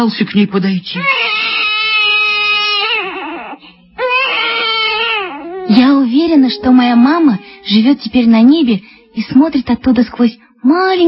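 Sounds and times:
speech: 0:00.0 - 0:01.4, 0:05.7 - 0:11.0
baby wailing loudly: 0:00.9 - 0:08.6.

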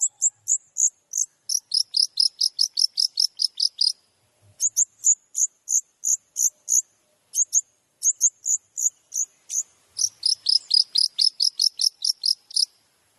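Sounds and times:
long-tailed shrike song: 0:00.0 - 0:04.0, 0:07.4 - 0:12.7.

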